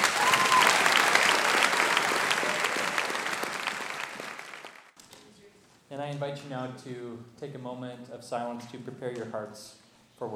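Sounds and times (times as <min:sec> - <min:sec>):
audience applause: 0:00.0 - 0:04.9
speech: 0:06.1 - 0:10.3.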